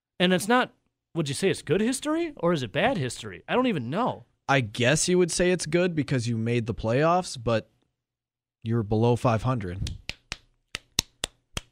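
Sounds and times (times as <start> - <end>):
speech: 0.2 - 7.7, 8.6 - 10.0
person slapping oneself: 9.8 - 11.7.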